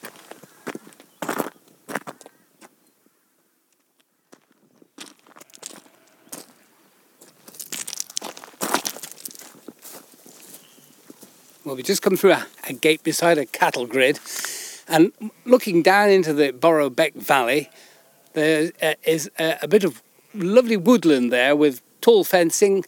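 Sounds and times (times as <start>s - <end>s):
gritty scuffing: 0.0s - 2.2s, 4.3s - 6.6s, 7.2s - 14.6s
footsteps crunching along a rough valley path: 0.0s - 15.4s
speech: 11.7s - 22.8s.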